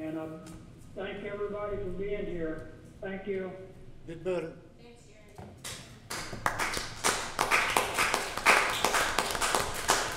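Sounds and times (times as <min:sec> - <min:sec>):
speech: 0:00.2 - 0:04.6
sparse audience clapping: 0:05.7 - 0:10.1.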